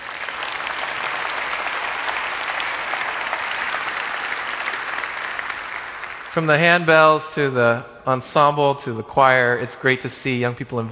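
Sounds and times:
church congregation applause for young musicians: 0:00.0 - 0:07.6
speech: 0:06.4 - 0:10.9.

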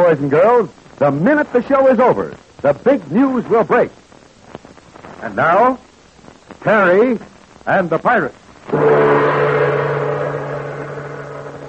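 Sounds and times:
speech: 0:00.0 - 0:04.0, 0:05.2 - 0:05.9, 0:06.5 - 0:09.3
airplane engine: 0:08.7 - 0:11.6.

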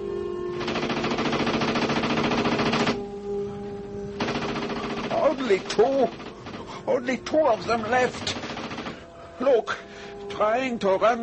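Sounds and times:
tank guns firing in battle: 0:00.6 - 0:03.0, 0:04.2 - 0:06.7, 0:08.1 - 0:09.0
speech: 0:05.5 - 0:06.3, 0:06.9 - 0:08.4, 0:09.4 - 0:09.8, 0:10.4 - 0:11.2.

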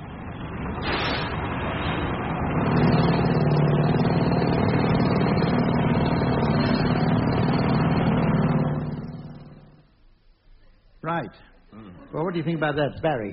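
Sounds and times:
roadworks heavy machinery roar: 0:00.0 - 0:09.8
speech: 0:11.2 - 0:11.5, 0:12.1 - 0:13.3.

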